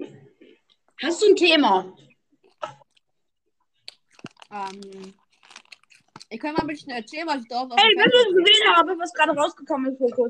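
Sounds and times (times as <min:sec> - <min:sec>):
speech: 0:01.0 - 0:02.1, 0:04.5 - 0:05.2, 0:06.3 - 0:10.2
crunchy chewing of cheese sticks: 0:03.8 - 0:06.4.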